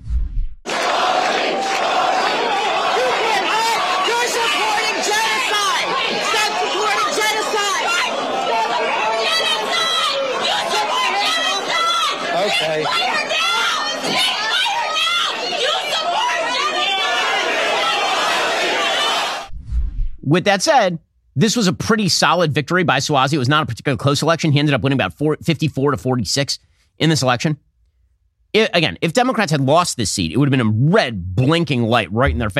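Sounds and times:
pro-Hamas protesters yelling at a candidate: 0:00.7 - 0:19.5
speech: 0:20.3 - 0:27.7, 0:28.5 - 0:32.5.

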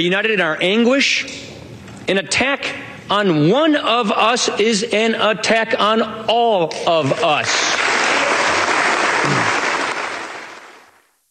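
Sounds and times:
speech: 0:00.0 - 0:01.5, 0:02.1 - 0:07.7
standing ovation applause: 0:07.4 - 0:11.0.

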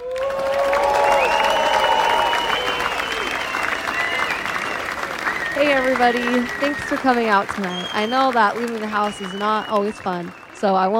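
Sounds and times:
audience clapping: 0:00.0 - 0:10.9
speech: 0:05.9 - 0:10.9.

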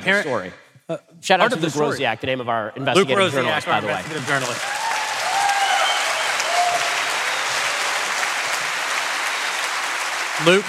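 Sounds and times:
speech: 0:00.0 - 0:04.8, 0:10.4 - 0:10.6
audience applause: 0:03.3 - 0:10.6.

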